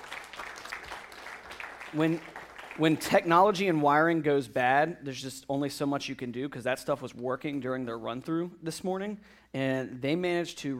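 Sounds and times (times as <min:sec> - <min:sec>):
audience clapping: 0:00.0 - 0:03.7
speech: 0:01.9 - 0:10.7.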